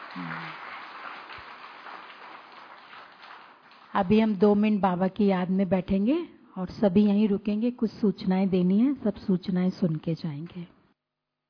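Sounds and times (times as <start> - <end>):
audience clapping: 0.0 - 4.6
speech: 0.2 - 0.6, 3.9 - 10.8.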